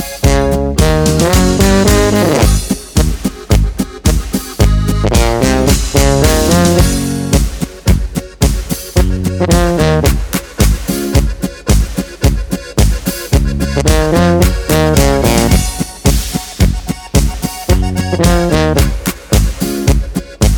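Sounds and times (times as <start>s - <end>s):
G sharp, C sharp, F sharp and B notes with accompaniment: 0.0s - 20.5s.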